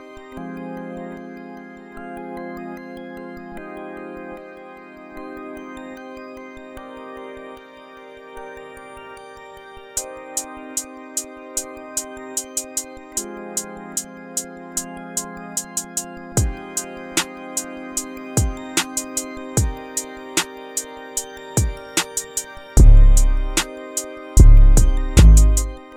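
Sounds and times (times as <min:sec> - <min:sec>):
lo-fi Brazilian funk type beat: 0:15.6 - 0:20.9, 0:21.6 - 0:25.9.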